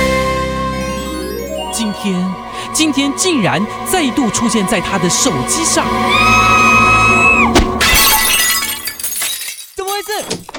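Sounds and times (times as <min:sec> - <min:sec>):
loud high-pitched scream: 0:00.8 - 0:08.6
speech: 0:01.8 - 0:06.7
something shattering: 0:07.8 - 0:10.5.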